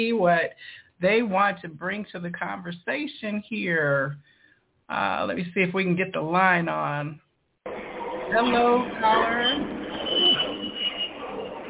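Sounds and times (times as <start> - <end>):
speech: 0.0 - 4.3, 4.9 - 9.8
airplane noise on caller's line: 7.7 - 11.6.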